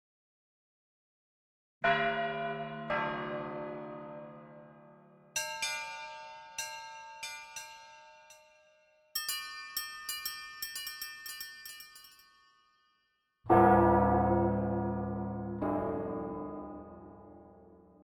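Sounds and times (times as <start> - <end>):
glockenspiel: 1.9 - 17.7.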